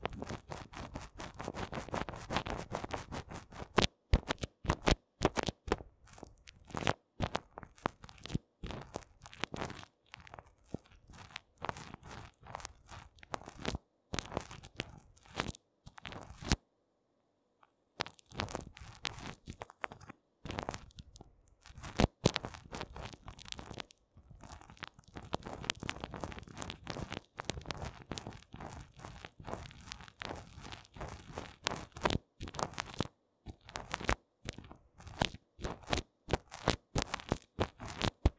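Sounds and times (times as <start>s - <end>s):
cream massage ASMR sounds: 0.0s - 16.5s, 18.0s - 21.0s, 21.6s - 38.3s.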